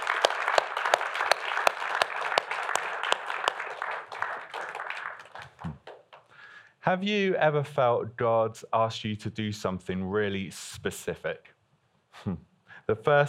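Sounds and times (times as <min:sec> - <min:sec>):
audience applause: 0:00.0 - 0:06.3
speech: 0:06.9 - 0:11.5, 0:12.2 - 0:13.2.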